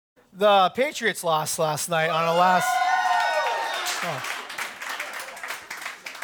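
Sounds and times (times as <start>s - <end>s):
speech: 0.4s - 2.9s, 4.0s - 4.4s
audience applause: 2.4s - 6.2s.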